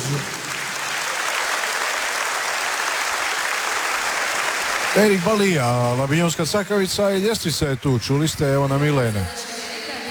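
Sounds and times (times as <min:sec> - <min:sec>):
crowd applause for an orchestra at a concert in Istria and Kvarner: 0:00.0 - 0:08.7
speech: 0:05.0 - 0:09.5.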